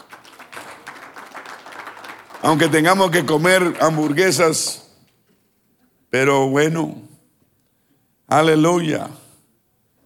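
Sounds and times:
audience applause: 0.0 - 4.6
speech: 2.4 - 4.8, 6.1 - 7.1, 8.3 - 9.2.

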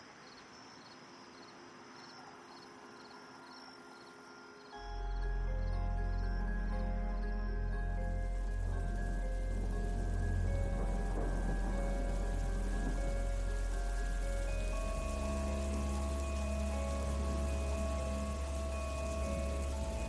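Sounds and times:
faint humming tones: 2.2 - 20.0
low rumble: 4.9 - 20.0
rain on a stormy evening: 6.2 - 20.0.

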